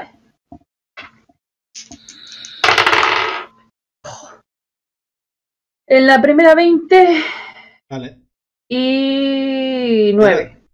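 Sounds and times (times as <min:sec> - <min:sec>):
dice clattering across a hard tabletop in a role-playing game: 0:02.3 - 0:03.5
speech: 0:05.9 - 0:10.6.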